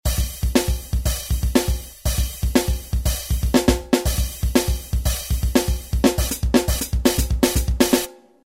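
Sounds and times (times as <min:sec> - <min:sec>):
drums: 0:00.0 - 0:08.4.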